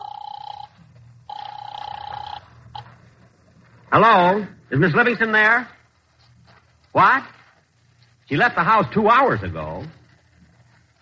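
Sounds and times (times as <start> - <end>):
telephone ringing through the line: 0.0 - 3.1
speech: 3.9 - 5.8, 7.0 - 7.4, 8.3 - 10.0.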